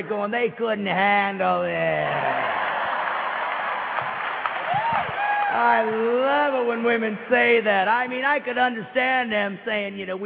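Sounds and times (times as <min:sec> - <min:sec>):
speech: 0:00.0 - 0:02.7, 0:04.9 - 0:10.2
women in audience clapping: 0:02.1 - 0:07.0.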